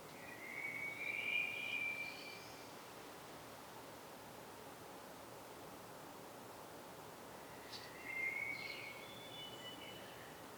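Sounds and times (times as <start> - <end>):
common blackbird Turdus merula song: 0.1 - 2.7, 7.4 - 10.4.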